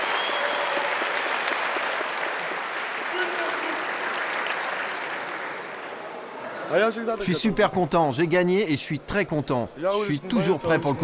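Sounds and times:
audience applause: 0.0s - 6.3s
speech: 6.7s - 11.0s.

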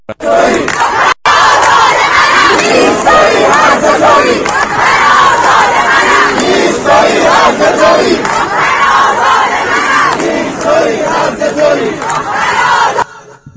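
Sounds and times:
crowd chanting protest slogan: 0.1s - 13.4s.

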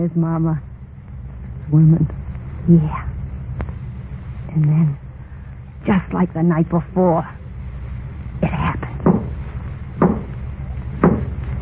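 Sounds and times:
speech: 0.0s - 0.7s, 1.7s - 3.1s, 4.5s - 5.0s, 5.8s - 7.4s
low steady hum: 0.0s - 11.5s
knocking on a wooden door: 9.0s - 9.4s, 10.0s - 10.3s, 11.0s - 11.4s.

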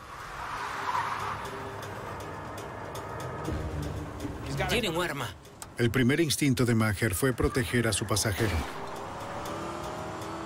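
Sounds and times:
car braking hard and skidding: 0.0s - 3.5s, 7.6s - 10.4s
speech: 4.6s - 8.8s.

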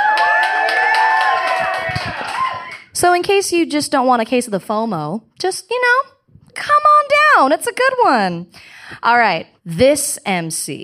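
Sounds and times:
live show audience whooping and shouting: 0.0s - 2.9s
speech: 3.0s - 10.8s.

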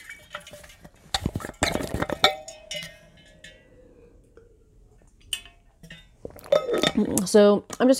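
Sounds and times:
glass clinking and clattering: 1.2s - 4.5s, 5.2s - 7.3s.

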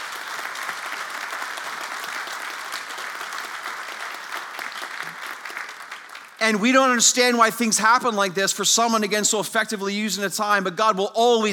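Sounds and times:
audience applause: 0.0s - 7.0s
speech: 6.4s - 11.5s.

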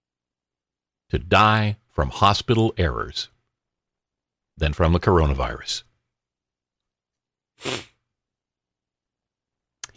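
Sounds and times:
speech: 1.1s - 3.3s, 4.6s - 5.9s, 7.6s - 7.9s
sniffing: 7.6s - 8.0s.

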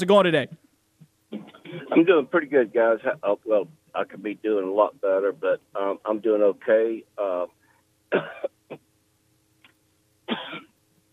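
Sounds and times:
speech: 0.0s - 0.6s, 1.9s - 8.8s
steady low hum: 0.0s - 11.1s
man coughing and clearing his throat after choking mid-sentence: 1.4s - 2.2s, 8.1s - 8.8s, 10.3s - 10.7s.

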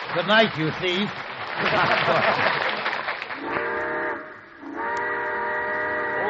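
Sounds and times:
speech: 0.1s - 2.7s
laughter: 1.5s - 3.3s
steam train whistle before departure: 3.4s - 6.2s.

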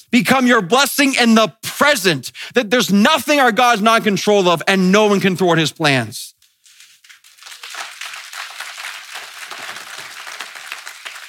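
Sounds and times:
speech: 0.0s - 6.3s
audience clapping: 7.0s - 11.2s.

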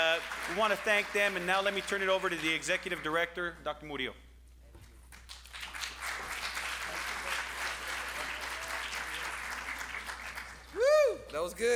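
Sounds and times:
audience applause: 0.0s - 2.6s, 5.3s - 11.0s
speech: 0.0s - 4.2s, 10.8s - 11.7s.

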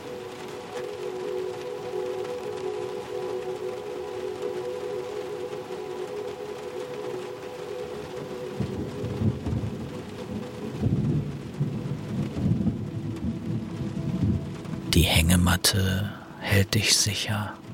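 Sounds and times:
steady soft rain: 0.0s - 17.7s
low rumble of thunder: 8.6s - 14.9s
speech: 15.0s - 17.6s.

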